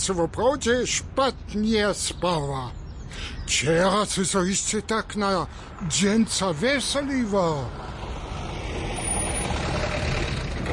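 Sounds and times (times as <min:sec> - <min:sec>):
speech: 0:00.0 - 0:08.0
truck rumbling past: 0:07.2 - 0:10.7.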